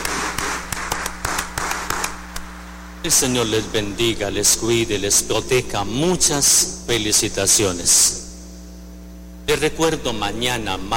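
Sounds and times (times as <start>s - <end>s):
applause of congratulation: 0.0s - 2.2s
speech: 3.0s - 8.2s, 9.5s - 10.9s.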